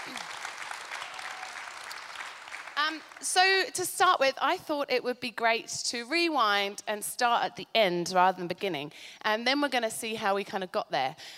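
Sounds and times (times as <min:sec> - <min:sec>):
audience round of applause: 0:00.0 - 0:03.3
speech: 0:02.9 - 0:11.3.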